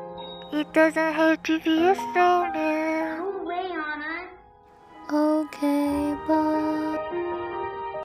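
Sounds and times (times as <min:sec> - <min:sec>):
childlike English version of a song: 0:00.5 - 0:04.4, 0:05.0 - 0:07.1.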